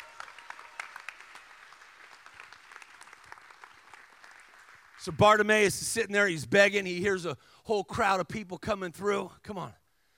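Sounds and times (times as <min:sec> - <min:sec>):
audience applause: 0:00.0 - 0:05.4
speech: 0:05.0 - 0:09.8.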